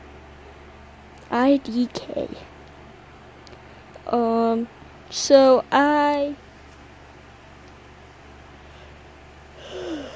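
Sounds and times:
speech: 1.3s - 2.5s, 4.1s - 6.4s
person yawning: 9.6s - 10.1s.

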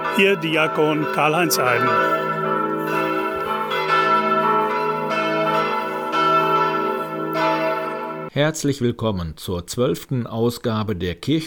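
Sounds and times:
bells of St. Maria Magdalena church in Laggenbeck ringing: 0.0s - 8.3s
speech: 0.2s - 3.0s, 8.4s - 11.4s.

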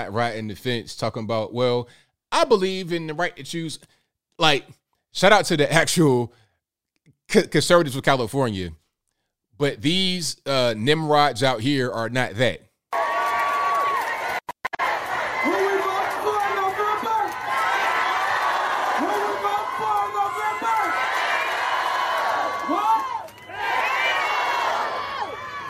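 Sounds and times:
speech: 0.0s - 6.4s, 7.3s - 8.8s, 9.6s - 13.0s
crowd cheering wildly at rally: 12.9s - 25.6s.

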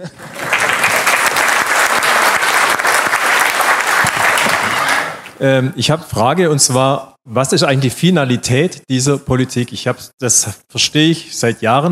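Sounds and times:
speech: 0.0s - 0.3s, 5.4s - 11.9s
audience applause: 0.0s - 5.3s.

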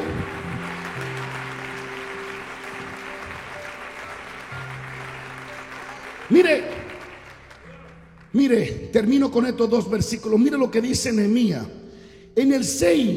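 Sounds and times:
audience applause: 0.0s - 8.4s
speech: 6.3s - 6.8s, 8.4s - 11.8s, 12.4s - 13.1s.

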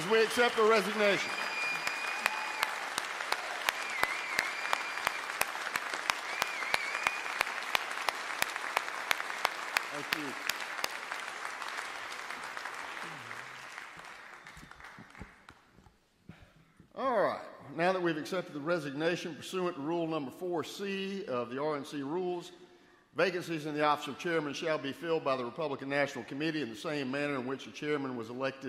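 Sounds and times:
audience applause for the Madam Chairman: 0.0s - 15.7s
speech: 0.1s - 1.5s, 18.2s - 22.6s, 23.2s - 28.6s.

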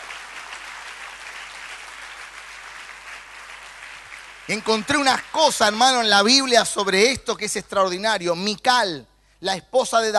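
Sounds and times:
audience applause: 0.0s - 6.0s
speech: 4.5s - 10.1s.

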